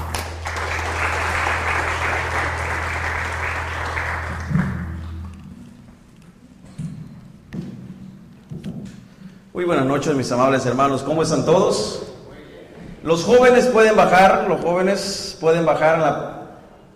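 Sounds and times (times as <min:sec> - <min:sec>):
audience applauding loudly: 0:00.0 - 0:05.4
speech: 0:09.6 - 0:12.1, 0:13.0 - 0:16.4.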